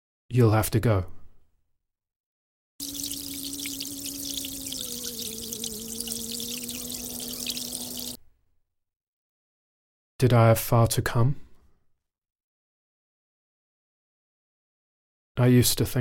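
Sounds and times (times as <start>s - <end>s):
speech: 0.3s - 1.2s, 10.2s - 11.4s, 15.4s - 15.9s
hands being washed: 2.8s - 8.2s.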